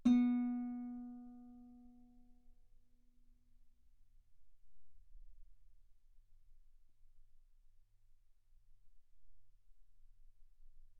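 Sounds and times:
guitar B3 note on B string played fortissimo: 0.0s - 1.2s.

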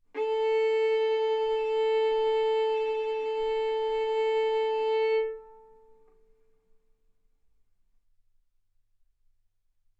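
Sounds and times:
violin arco on A string: 0.1s - 6.2s.

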